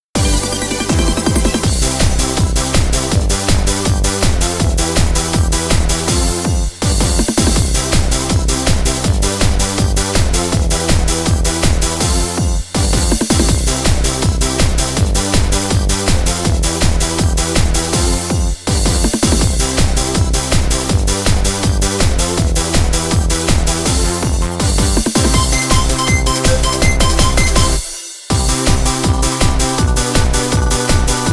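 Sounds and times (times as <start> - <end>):
off vocal instrumental music: 0.2 - 31.3.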